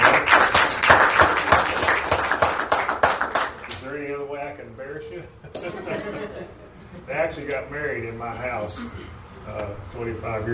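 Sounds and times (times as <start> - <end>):
audience applause: 0.0 - 3.8
speech: 4.6 - 10.5
laughter: 5.2 - 7.1.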